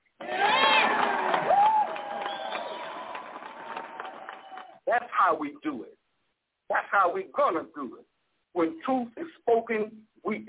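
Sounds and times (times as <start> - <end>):
audience applause: 0.2 - 4.8
speech: 4.9 - 6.0, 6.9 - 10.4.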